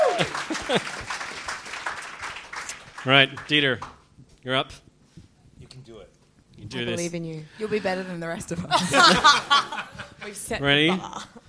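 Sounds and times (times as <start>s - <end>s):
laughter: 0.0s - 1.1s, 8.5s - 10.4s
audience applause: 0.0s - 3.9s
speech: 0.2s - 1.2s, 3.0s - 4.8s, 5.8s - 11.4s.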